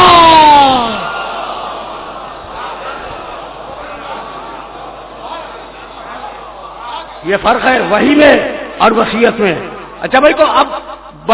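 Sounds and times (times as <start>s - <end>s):
low crowd murmur: 0.0s - 7.8s
crowd at a religious sermon calling out a salaam greeting: 0.8s - 7.2s
speech: 7.3s - 11.3s.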